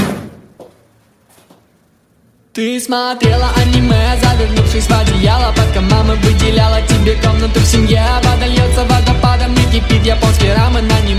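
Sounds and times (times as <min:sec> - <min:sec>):
door shutting with a solid thud: 0:00.0 - 0:00.5
speech: 0:02.6 - 0:11.1.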